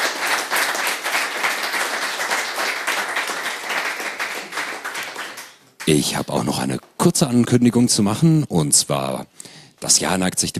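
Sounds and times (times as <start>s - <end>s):
audience applause: 0.0s - 6.1s
speech: 5.8s - 10.5s.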